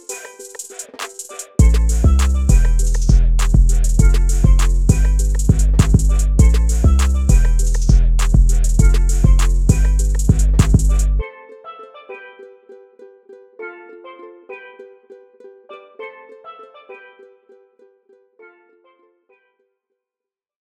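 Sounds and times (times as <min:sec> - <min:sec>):
island beat: 0:00.0 - 0:11.2.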